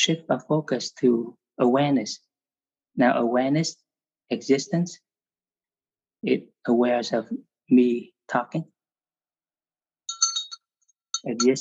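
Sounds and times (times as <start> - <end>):
speech: 0.0 - 2.3, 3.0 - 5.0, 6.2 - 8.8, 11.2 - 11.6
small bell ringing: 10.1 - 11.6.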